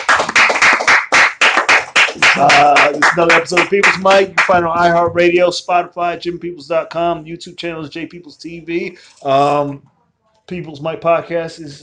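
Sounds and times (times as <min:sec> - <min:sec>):
clapping: 0:00.0 - 0:04.6
speech: 0:02.4 - 0:09.9, 0:10.5 - 0:11.8.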